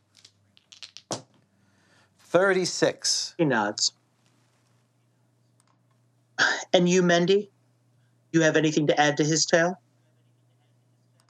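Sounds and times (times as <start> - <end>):
percentile dice rattling and tumbling: 0.1 - 1.3
speech: 2.3 - 4.0, 6.8 - 7.6, 8.3 - 9.8.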